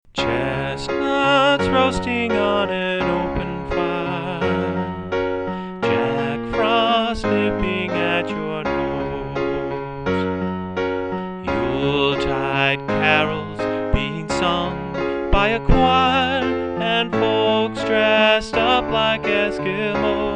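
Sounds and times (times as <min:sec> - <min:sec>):
Christmas song on piano: 0:00.0 - 0:20.3.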